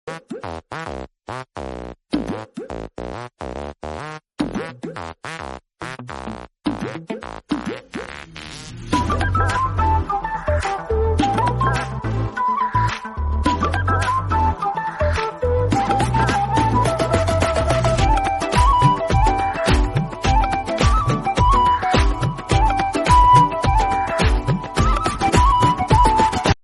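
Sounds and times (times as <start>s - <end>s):
Tamil background music: 8.7s - 26.6s.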